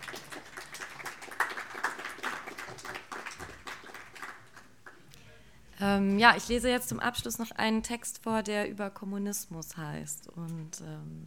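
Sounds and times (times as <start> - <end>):
audience clapping: 0.0 - 5.1
speech: 5.8 - 11.2.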